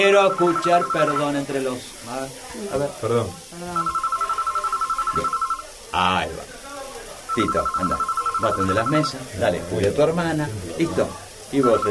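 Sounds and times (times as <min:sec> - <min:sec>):
telephone ringing at a grill restaurant: 0:00.0 - 0:01.7, 0:03.6 - 0:05.8, 0:07.3 - 0:09.3, 0:11.5 - 0:11.8
speech: 0:00.0 - 0:04.0, 0:05.1 - 0:06.5, 0:07.4 - 0:11.8.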